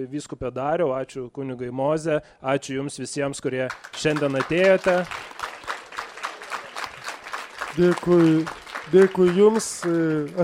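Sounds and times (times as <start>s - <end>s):
speech: 0.0s - 5.4s, 7.8s - 10.4s
congregation clapping in unison after a sermon: 3.7s - 10.4s.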